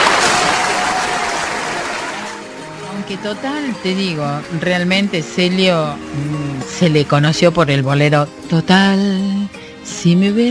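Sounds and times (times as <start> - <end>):
audience applause: 0.0 - 6.7
speech: 3.1 - 10.4.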